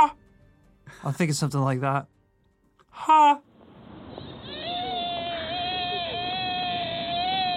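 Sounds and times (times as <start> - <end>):
speech: 1.0 - 2.2, 2.9 - 3.5
deer whining call: 4.1 - 7.5.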